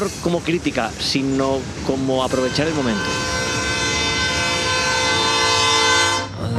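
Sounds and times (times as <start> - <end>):
speech: 0.0 - 3.4
passing train cars rumbling and clattering on a railway track: 0.0 - 6.0
train horn blast beside a school's playing fields: 2.2 - 6.4.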